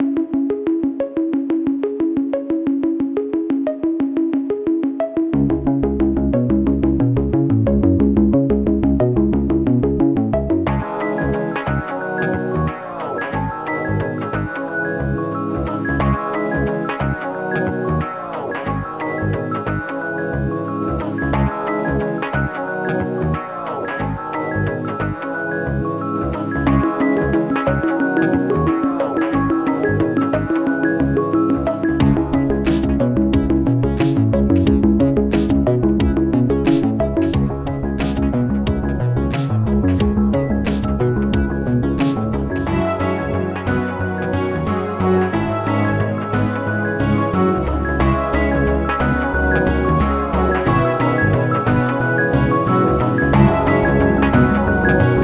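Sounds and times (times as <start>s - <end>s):
synths: 0.0s - 55.2s.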